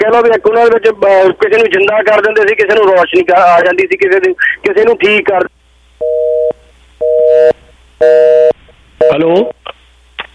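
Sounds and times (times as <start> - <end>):
speech: 0.2 - 5.6, 7.3 - 9.7
telephone busy tone after a line has disconnected: 6.0 - 9.2.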